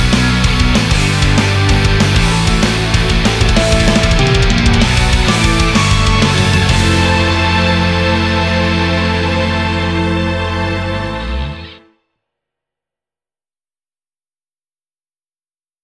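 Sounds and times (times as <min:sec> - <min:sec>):
off vocal instrumental music: 0:00.0 - 0:12.0.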